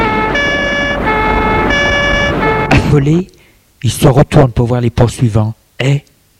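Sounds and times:
police siren during a car chase: 0:00.0 - 0:02.8
continuous roar: 0:00.0 - 0:03.4
speech: 0:02.9 - 0:06.1.

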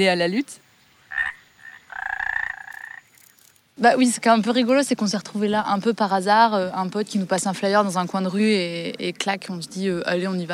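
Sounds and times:
speech: 0:00.0 - 0:00.6, 0:03.8 - 0:10.5
midwife toad calling with high whistle-like notes: 0:00.0 - 0:03.6.

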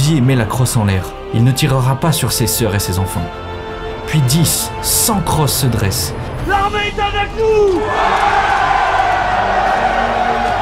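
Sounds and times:
speech: 0:00.1 - 0:08.8
large crowd shouting and cheering with joy: 0:06.5 - 0:10.6
whoops: 0:07.7 - 0:10.6.

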